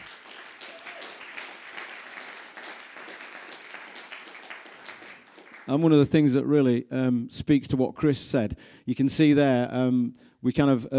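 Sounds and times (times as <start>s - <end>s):
audience cheering and applauding: 0.0s - 5.8s
speech: 5.7s - 10.9s.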